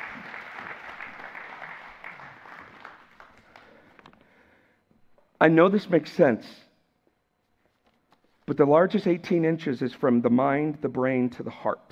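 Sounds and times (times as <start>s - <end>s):
audience applause: 0.0s - 4.1s
speech: 5.4s - 6.6s, 8.5s - 11.9s.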